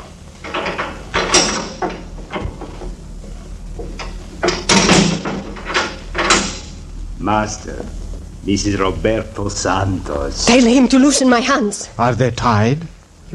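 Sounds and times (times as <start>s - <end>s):
heavy door opening with clunks and creaks: 0.0s - 6.8s
low rumbling background: 0.0s - 13.3s
speech: 7.2s - 13.3s.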